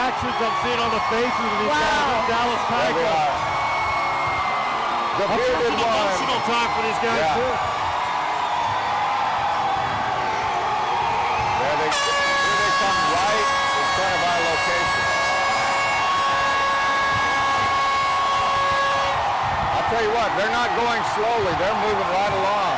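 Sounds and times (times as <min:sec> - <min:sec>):
crowd roar: 0:00.0 - 0:22.7
speech: 0:00.2 - 0:03.5, 0:05.2 - 0:07.8, 0:20.0 - 0:22.7
fire truck horn blaring: 0:11.8 - 0:19.2.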